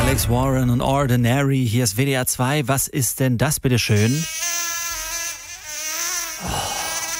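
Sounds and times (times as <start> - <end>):
speech: 0.2 - 4.4
buzzing mosquito: 4.0 - 7.1.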